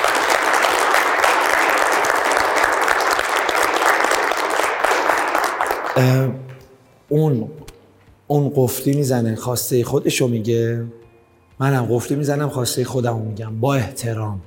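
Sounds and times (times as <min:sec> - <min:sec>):
audience applause: 0:00.0 - 0:06.2
speech: 0:06.0 - 0:06.4, 0:07.1 - 0:07.7, 0:08.3 - 0:11.0, 0:11.6 - 0:14.4.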